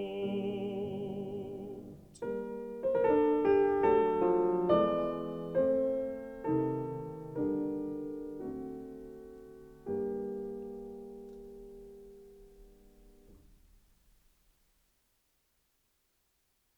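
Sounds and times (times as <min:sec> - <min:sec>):
person singing: 0:00.0 - 0:02.0
piano: 0:00.0 - 0:14.5.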